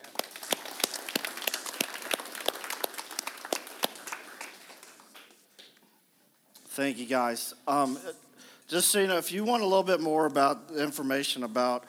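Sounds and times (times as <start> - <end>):
audience clapping: 0.0 - 5.8
speech: 6.8 - 11.8.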